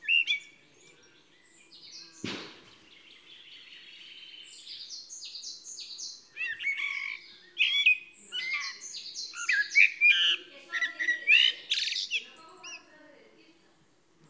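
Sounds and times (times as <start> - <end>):
Eurasian blackbird chirping calls: 0.0 - 13.0
loud dry crack: 2.2 - 2.7.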